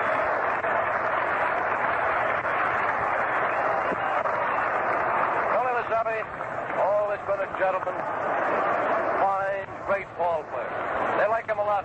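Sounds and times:
ballpark crowd applause: 0.0s - 11.8s
speech: 7.6s - 8.7s.

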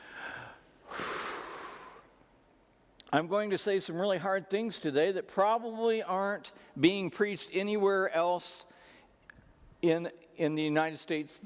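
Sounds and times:
church congregation drawing a deep breath together: 0.0s - 2.1s
speech: 3.1s - 8.8s, 9.8s - 11.4s.

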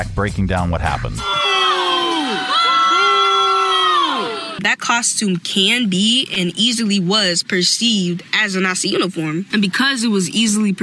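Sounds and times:
speech: 0.0s - 1.5s, 4.6s - 10.8s
students booing: 1.2s - 4.6s.

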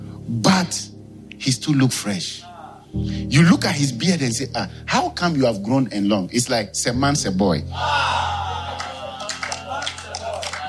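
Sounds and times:
speech: 0.3s - 8.2s
laughter: 7.8s - 10.6s
audience clapping hands: 8.7s - 10.6s.

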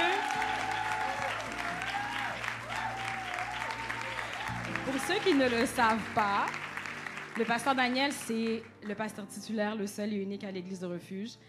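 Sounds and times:
church congregation applauding its pastor: 0.0s - 9.1s
speech: 5.1s - 6.6s, 7.4s - 11.4s.

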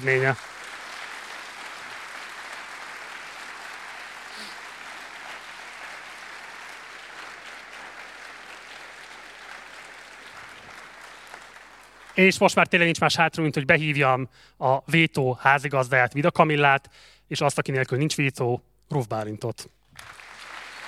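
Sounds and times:
speech: 0.0s - 0.6s, 12.2s - 20.2s
large audience applause: 0.0s - 12.6s, 20.0s - 20.8s.

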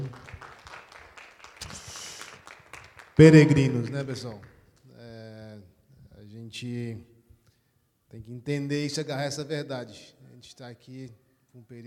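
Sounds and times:
audience applauding: 0.0s - 3.3s
speech: 3.2s - 4.5s, 6.5s - 7.1s, 8.1s - 11.8s.

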